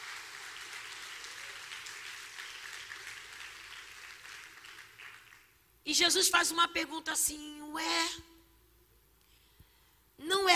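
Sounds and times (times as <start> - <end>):
audience applause: 0.0 - 5.6
speech: 5.9 - 8.3.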